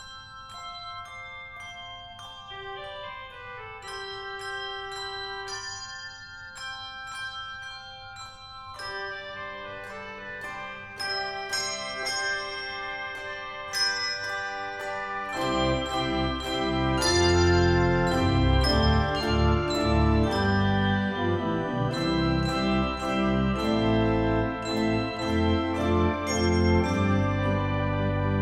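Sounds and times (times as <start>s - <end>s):
handbell: 0.0s - 28.4s
organ: 14.8s - 28.4s.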